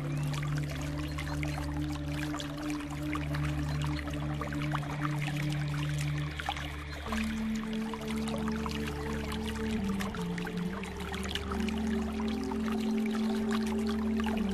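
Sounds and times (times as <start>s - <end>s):
deep relaxing music: 0.0s - 14.5s
water flowing: 0.0s - 14.5s.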